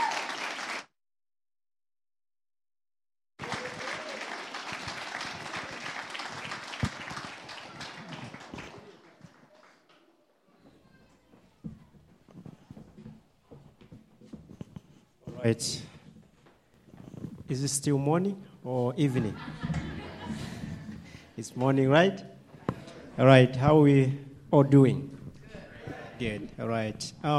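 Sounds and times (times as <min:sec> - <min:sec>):
audience applause welcoming singers at a Nebraska event: 0:00.0 - 0:00.9, 0:03.4 - 0:10.9
laughter: 0:03.4 - 0:09.8, 0:18.8 - 0:21.4, 0:25.4 - 0:26.7
speech: 0:15.4 - 0:15.9, 0:17.5 - 0:19.8, 0:21.4 - 0:22.3, 0:23.2 - 0:25.1, 0:26.2 - 0:27.3.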